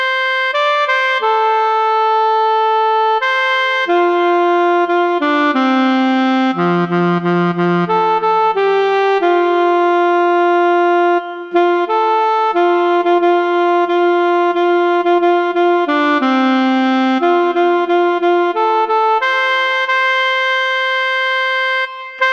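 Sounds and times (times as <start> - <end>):
alto saxophone playing a spiritual: 0.0 - 22.3.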